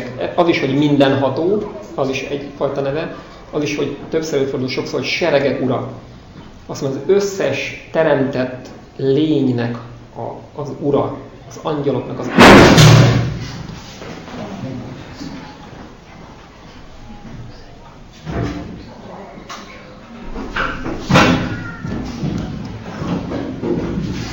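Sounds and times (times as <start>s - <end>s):
speech: 0.3s - 6.1s, 6.7s - 13.6s
heavy chair dropped, thudding on floor: 20.4s - 24.2s.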